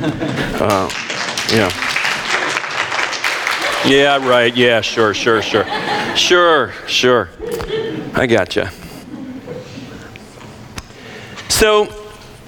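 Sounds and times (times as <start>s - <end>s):
laughter: 0.0s - 0.9s, 3.5s - 10.2s
speech: 0.0s - 1.9s, 3.8s - 8.8s, 11.6s - 12.0s
audience applause: 0.0s - 6.0s
raised voices and cheers: 0.3s - 6.2s.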